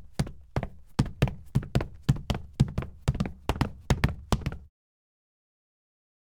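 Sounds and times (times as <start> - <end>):
sneaker footsteps on wood parquet: 0.0 - 4.7.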